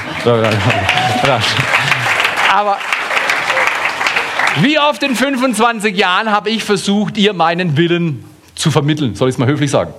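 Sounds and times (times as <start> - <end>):
audience applause: 0.0 - 5.5
speech: 0.2 - 1.9, 2.5 - 2.9, 4.5 - 9.9.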